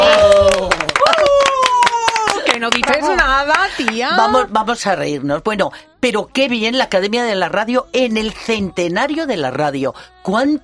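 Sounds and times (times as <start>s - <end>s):
people cheering: 0.0s - 2.6s
applause: 0.0s - 4.0s
speech: 2.7s - 10.6s.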